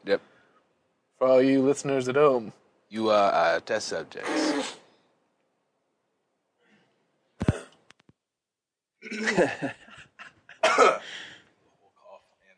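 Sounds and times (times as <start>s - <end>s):
speech: 0.0s - 0.3s, 1.2s - 4.8s, 9.1s - 9.8s
throat clearing: 7.4s - 7.8s, 10.6s - 11.1s
laughter: 9.0s - 10.6s.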